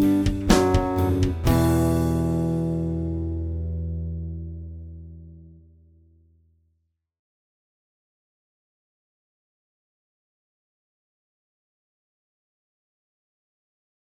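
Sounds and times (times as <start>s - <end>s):
dry solo backing track: 0.0s - 3.6s.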